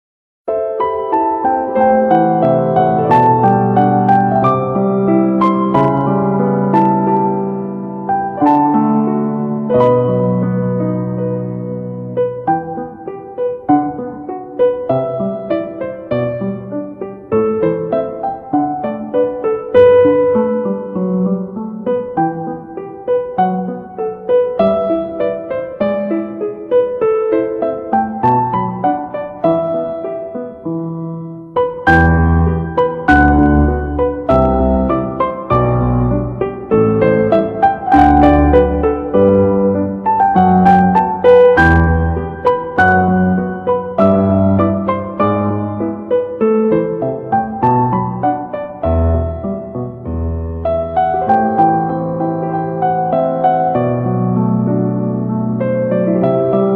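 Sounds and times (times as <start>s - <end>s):
piano: 0.5s - 56.7s.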